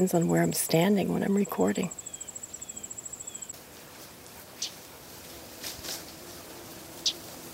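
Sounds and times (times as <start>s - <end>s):
speech: 0.0s - 2.1s
background insect chorus: 1.4s - 3.6s.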